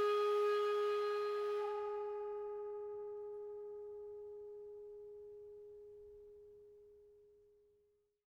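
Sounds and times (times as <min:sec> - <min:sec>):
bowed cymbals in double octave: 0:00.0 - 0:04.2.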